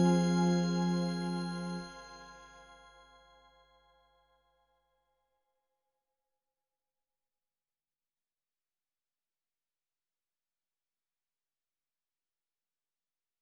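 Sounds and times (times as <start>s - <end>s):
instrumental music: 0.0s - 3.3s.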